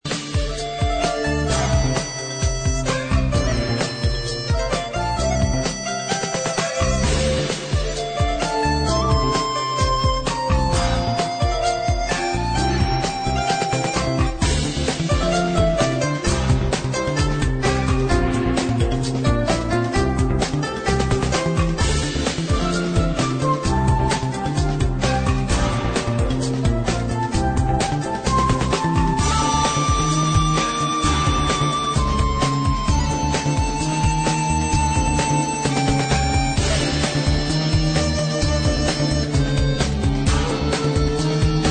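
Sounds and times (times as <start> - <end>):
battle music: 0.0 - 41.6.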